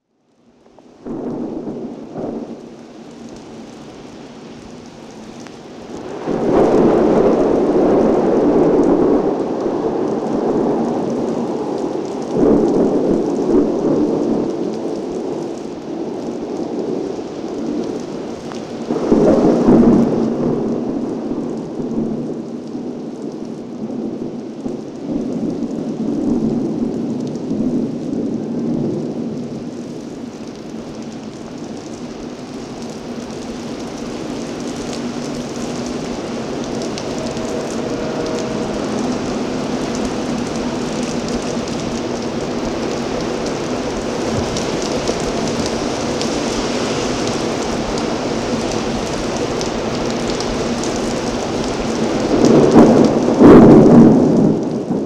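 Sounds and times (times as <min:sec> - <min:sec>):
thunder: 0:01.0 - 0:55.0.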